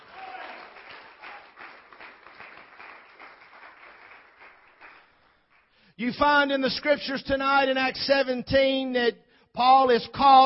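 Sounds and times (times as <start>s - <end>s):
cheering voices: 0.0s - 1.8s
crowd clapping: 0.0s - 5.8s
speech: 6.0s - 10.4s.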